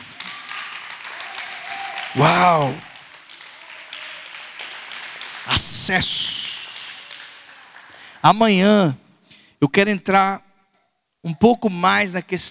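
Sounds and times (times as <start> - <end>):
audience applause: 0.0 - 8.2
speech: 2.2 - 2.9, 5.9 - 6.2, 8.2 - 9.0, 9.6 - 10.5, 11.2 - 12.5.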